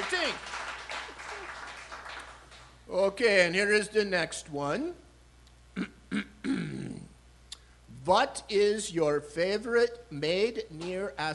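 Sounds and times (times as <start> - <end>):
light scattered applause from a small group: 0.0 - 2.7
speech: 2.9 - 5.0, 8.0 - 11.3.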